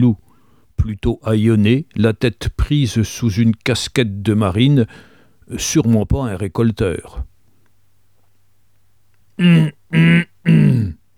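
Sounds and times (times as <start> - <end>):
speech: 0.0 - 0.2, 0.8 - 7.3, 9.4 - 11.0
man with a parched throat coughing dryly: 9.4 - 11.0.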